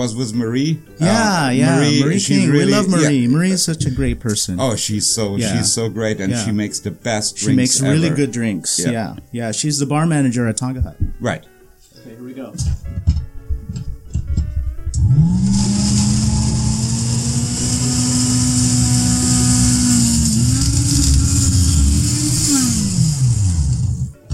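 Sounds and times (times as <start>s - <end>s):
speech: 0.0s - 13.9s
Waring Pro blender flash blending a drink: 15.0s - 24.2s.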